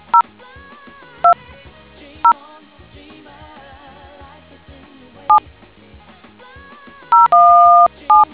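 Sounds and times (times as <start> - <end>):
DTMF tones: 0.0 - 0.2, 7.1 - 8.3.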